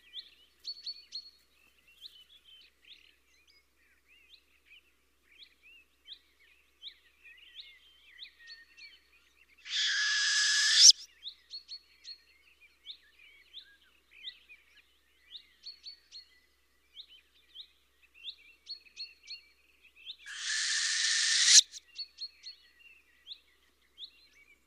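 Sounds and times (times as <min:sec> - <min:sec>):
owl screeching: 0:09.7 - 0:11.0, 0:20.3 - 0:21.8
small birds chirping: 0:09.7 - 0:11.0, 0:20.3 - 0:21.8.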